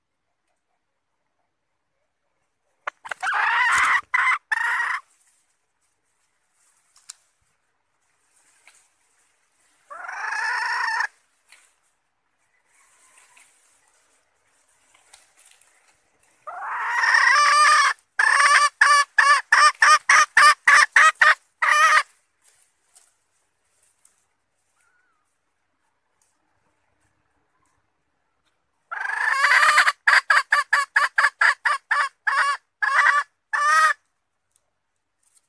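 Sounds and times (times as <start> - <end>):
Red junglefowl hen cackling: 2.8 - 5.1, 9.8 - 11.2, 16.4 - 22.2, 28.8 - 34.1
faint background rustles: 4.9 - 16.5, 22.1 - 28.9, 34.0 - 35.4.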